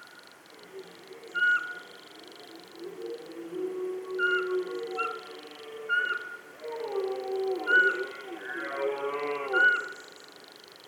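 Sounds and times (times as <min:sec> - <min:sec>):
pulsed chirring: 0:00.5 - 0:10.4
Eurasian pygmy owl piping whistles: 0:00.9 - 0:06.9.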